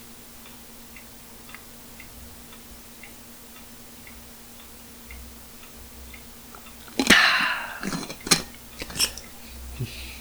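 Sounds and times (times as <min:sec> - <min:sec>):
big swig of water with gulps and swallows: 0:06.5 - 0:10.2
sharp clack: 0:06.8 - 0:09.3.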